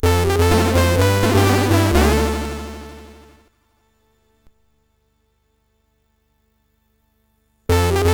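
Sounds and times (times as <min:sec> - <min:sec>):
MOS6581R3 SID chip sound: 0:00.0 - 0:03.4, 0:07.7 - 0:08.1.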